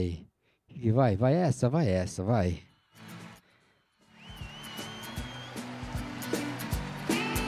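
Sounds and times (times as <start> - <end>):
speech: 0.0 - 2.7
background music with pulsing beat and high melody: 4.3 - 7.4.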